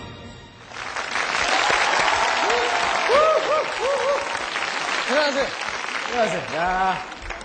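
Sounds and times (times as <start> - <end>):
audience applause: 0.7 - 7.4
audience cheers and whistles: 1.3 - 4.7.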